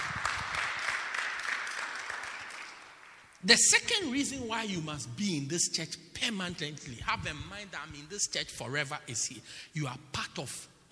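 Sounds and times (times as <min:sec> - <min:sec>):
audience clapping: 0:00.0 - 0:03.4
speech: 0:03.4 - 0:10.9.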